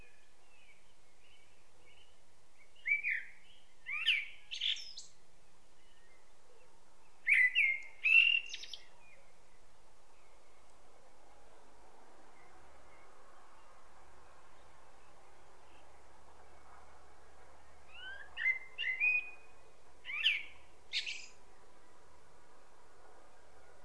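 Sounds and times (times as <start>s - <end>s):
common blackbird singing: 0.0s - 5.2s, 5.8s - 9.6s, 17.6s - 21.4s.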